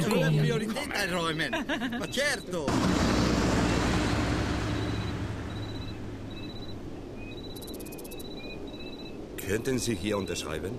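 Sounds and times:
speech: 0.0 - 3.3, 9.5 - 10.7
laughter: 1.3 - 2.2
car overtaking on a road to El Paso: 2.7 - 7.6.

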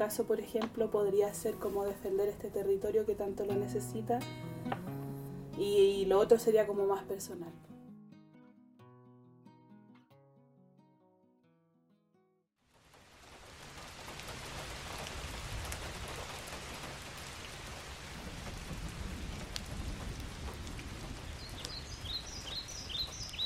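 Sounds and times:
speech: 0.0 - 4.8, 5.6 - 7.7
soft melodic notes: 0.7 - 7.8
rain pouring down on city streets: 12.6 - 23.4.

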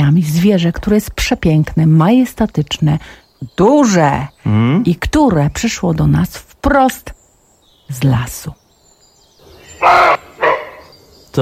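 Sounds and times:
speech: 0.0 - 7.2, 7.9 - 8.6, 9.8 - 10.2
roe deer barking: 9.4 - 11.4.

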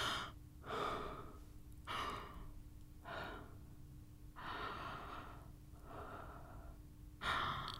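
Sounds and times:
person breathing in and out slowly: 0.0 - 3.6, 4.4 - 7.7.

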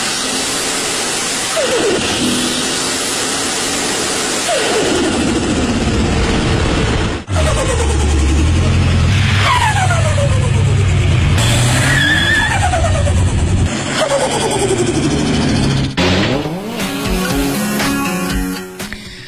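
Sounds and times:
high whistling turbo spool: 0.0 - 3.8, 9.2 - 15.8
turbocharged car engine revving: 0.0 - 18.3.

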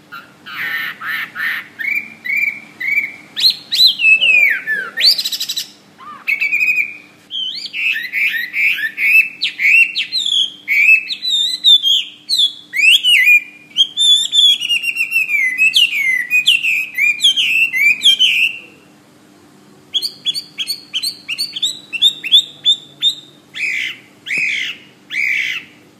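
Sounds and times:
bird singing: 0.0 - 18.8, 19.9 - 25.8.

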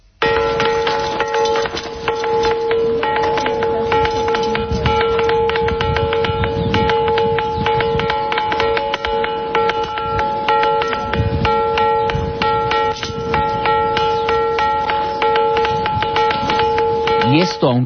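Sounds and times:
ringing phonolith bell stones struck: 0.2 - 17.8.

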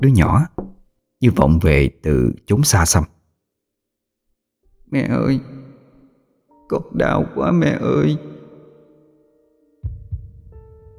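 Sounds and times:
speech: 0.0 - 0.6, 1.2 - 3.2, 4.9 - 5.6, 6.7 - 8.3
heartbeat pounding: 9.8 - 10.6.

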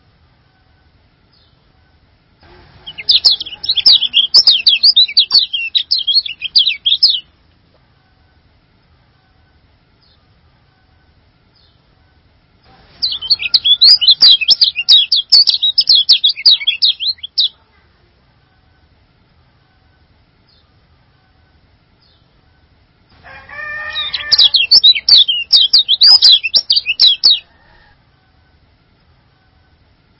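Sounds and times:
low background rumble: 0.0 - 30.1
songbird singing: 0.5 - 2.0, 2.8 - 7.4, 9.2 - 12.2, 13.0 - 17.6, 19.5 - 22.7, 23.5 - 27.8.

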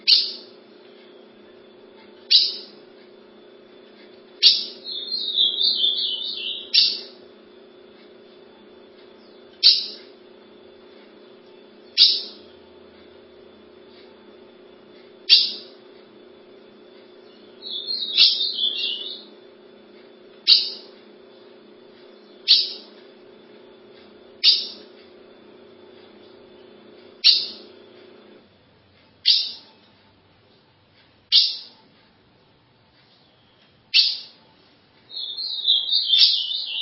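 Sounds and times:
ultramarine grosbeak song: 0.0 - 1.2, 2.2 - 13.5, 15.1 - 23.4, 24.2 - 28.0, 29.2 - 29.8, 31.3 - 31.8, 33.1 - 34.4, 35.1 - 36.7.

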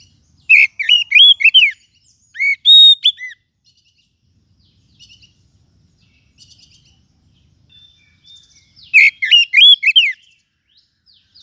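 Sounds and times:
lovebird calls: 0.0 - 3.4, 7.7 - 10.3.

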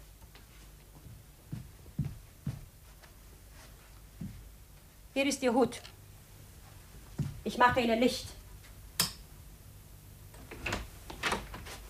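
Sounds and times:
speech: 5.2 - 6.0, 7.5 - 8.4
door being opened: 10.3 - 11.7.

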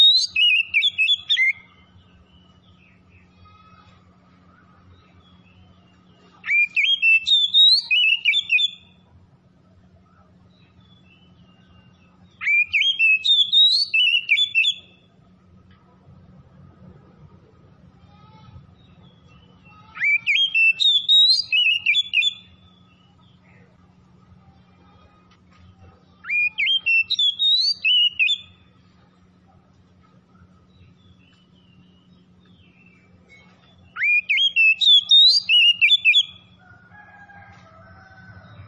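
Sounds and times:
oriental magpie-robin song: 0.0 - 3.1, 5.2 - 9.0, 10.5 - 15.1, 19.1 - 23.2, 26.2 - 28.6, 30.7 - 36.6.

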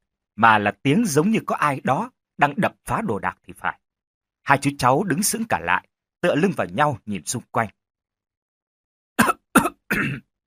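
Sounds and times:
speech: 0.4 - 3.8, 4.5 - 7.8, 10.0 - 10.3
harsh hacking coughs outside in a dark yard: 9.2 - 10.3.

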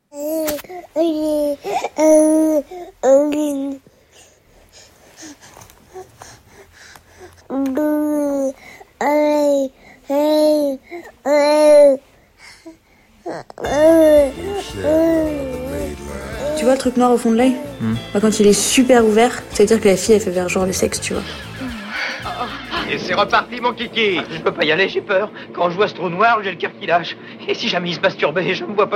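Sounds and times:
baby babbling: 0.1 - 3.8, 7.3 - 18.0
speech: 0.1 - 3.8, 16.8 - 21.6, 22.9 - 28.9
laughter: 21.2 - 23.2.

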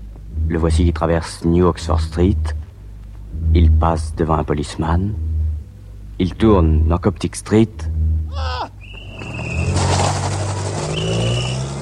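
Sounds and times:
speech: 0.5 - 2.6, 3.3 - 5.3, 6.2 - 8.8
car speeding away: 7.8 - 11.8.

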